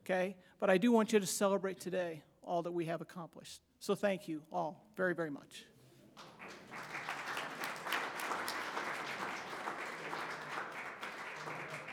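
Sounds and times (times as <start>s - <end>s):
speech: 0.1s - 6.9s
crowd applause: 6.2s - 11.9s.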